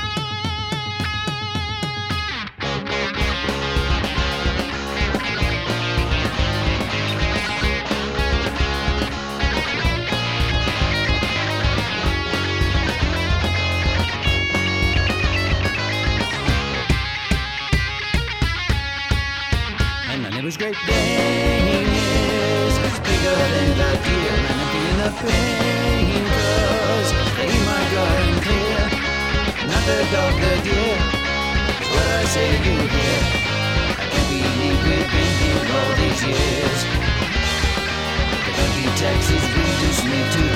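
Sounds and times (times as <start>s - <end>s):
full guitar solo with bus effects: 0.0s - 40.5s.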